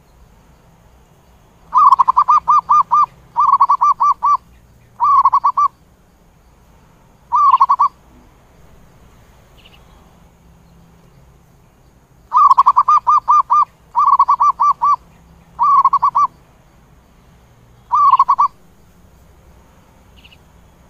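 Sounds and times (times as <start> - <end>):
zebra dove cooing: 1.7 - 5.7, 7.3 - 8.0, 12.3 - 15.0, 15.6 - 16.3, 17.9 - 18.6.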